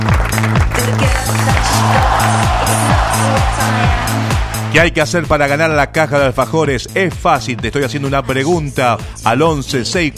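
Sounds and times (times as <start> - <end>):
crowd clapping and cheering on a radio show: 0.0 - 4.9
looping bouncy bass-heavy music bed: 0.0 - 10.1
speech: 4.7 - 10.1.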